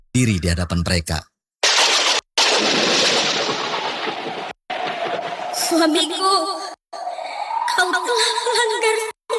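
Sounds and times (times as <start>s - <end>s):
speech: 0.2s - 1.3s, 5.7s - 6.6s, 7.8s - 9.2s
lightning strike and thunder: 1.6s - 6.1s.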